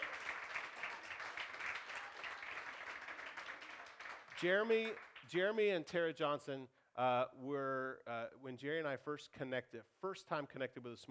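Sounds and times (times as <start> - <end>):
audience applause welcoming visiting friends from Columbus: 0.0 - 5.1
speech: 4.4 - 11.1.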